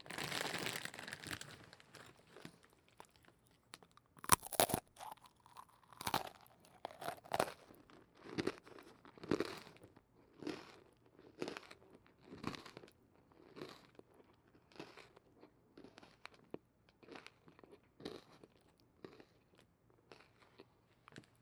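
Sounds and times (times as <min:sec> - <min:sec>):
crunchy crispy food bitten and chewed: 0:00.0 - 0:21.4.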